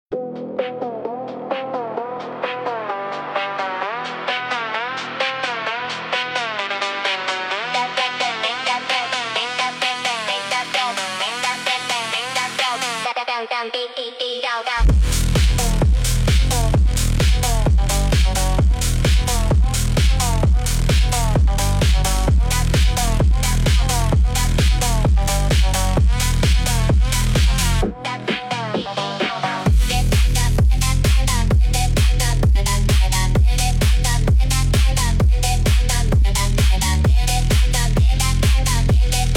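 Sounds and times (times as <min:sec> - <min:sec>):
phonk music: 0:00.1 - 0:39.3.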